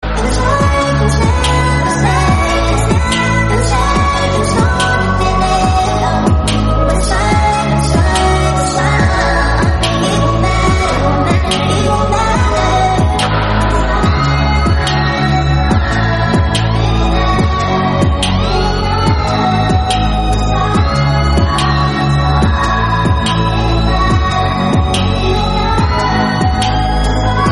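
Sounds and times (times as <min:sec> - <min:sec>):
instrumental music: 0:00.0 - 0:27.5.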